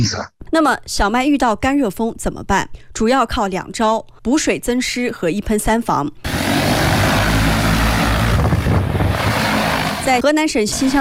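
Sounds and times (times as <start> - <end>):
speech: 0.0 - 6.6, 10.1 - 10.9
multiple agricultural spraying drones flying: 6.2 - 10.9.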